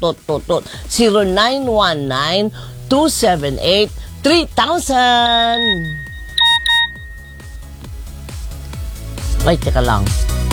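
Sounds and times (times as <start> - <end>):
speech: 0.0 - 6.0, 9.4 - 10.4
phone ringtone: 5.2 - 7.7.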